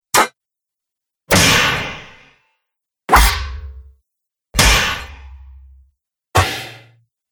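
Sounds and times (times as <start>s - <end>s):
sword and weapon hits: 1.3s - 2.2s, 3.1s - 3.9s, 4.6s - 5.8s.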